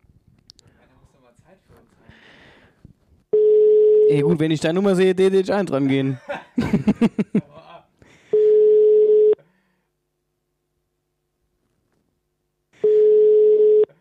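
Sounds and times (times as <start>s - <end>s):
speech: 1.4s - 2.5s, 4.1s - 7.5s
telephone ringback tone of an unanswered call: 3.3s - 4.2s, 8.3s - 9.4s, 12.8s - 13.9s
laughter: 5.8s - 7.8s.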